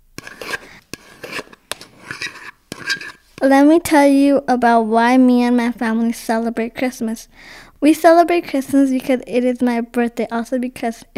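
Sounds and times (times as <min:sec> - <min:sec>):
potato masher scraping in a pot: 0:00.2 - 0:03.4
speech: 0:03.4 - 0:11.1.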